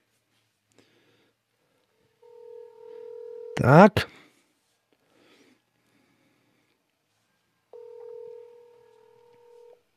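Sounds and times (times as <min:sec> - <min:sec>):
electronic phone tone: 0:02.2 - 0:03.6, 0:07.7 - 0:09.8
speech: 0:03.6 - 0:04.2.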